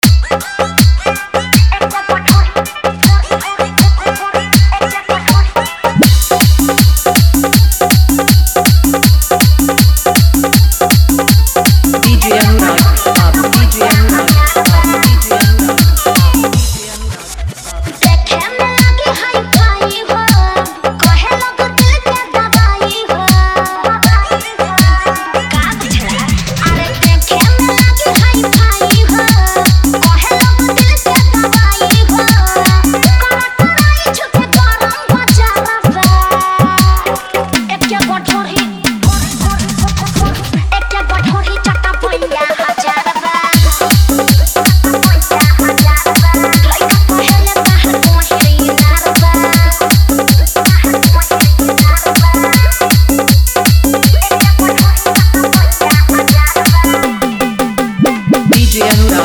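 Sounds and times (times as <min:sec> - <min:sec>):
dholak with hard bass: 0:00.0 - 0:59.2.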